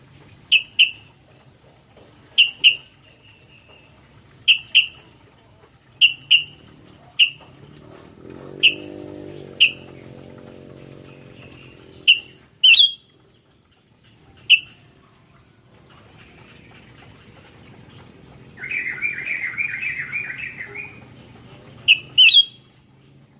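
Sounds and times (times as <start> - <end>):
Sooty-headed bulbul loud piercing chirps: 0.4 - 1.1, 5.9 - 7.5, 8.3 - 13.5, 14.4 - 15.2, 15.8 - 22.9.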